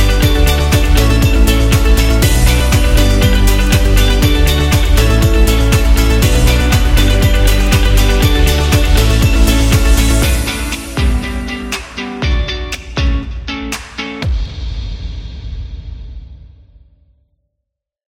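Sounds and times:
pop guitar music: 0.0s - 14.4s.

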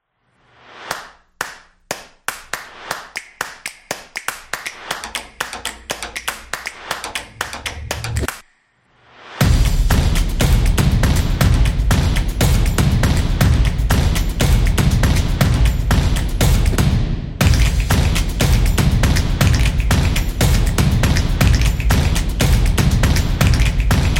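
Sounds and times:
drumming: 4.2s - 8.4s, 9.4s - 24.1s.

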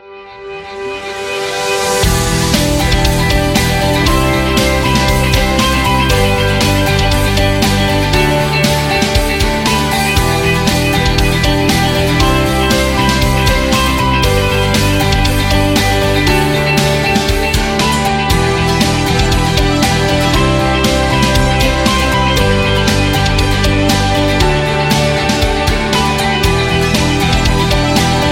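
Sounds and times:
inspiring rock music: 0.0s - 28.3s.

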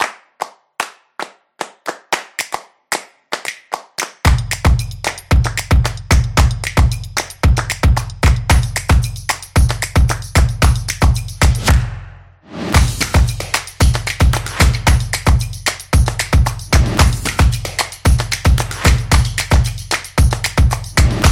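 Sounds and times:
percussion promo music: 3.4s - 21.3s.

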